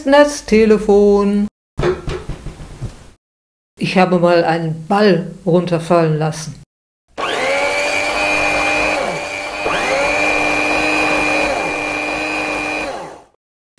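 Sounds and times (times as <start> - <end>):
speech: 0.0 - 2.1, 3.8 - 6.6
electric hand mixer whirring: 7.1 - 13.4.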